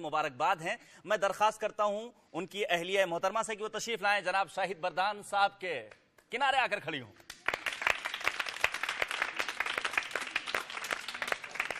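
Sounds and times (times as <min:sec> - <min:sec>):
speech: 0:00.0 - 0:07.3
audience applause: 0:07.3 - 0:11.7.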